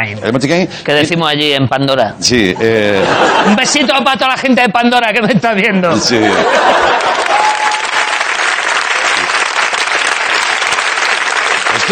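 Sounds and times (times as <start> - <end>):
speech: 0.0 - 7.5
laughter: 2.6 - 4.2, 5.1 - 7.8
audience applause: 6.4 - 11.9.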